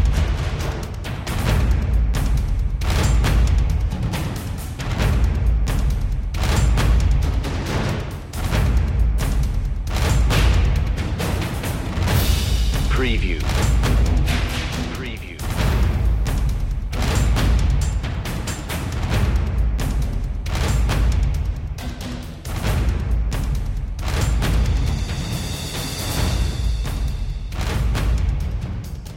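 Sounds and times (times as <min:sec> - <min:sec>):
percussion mix: 0:00.0 - 0:29.1.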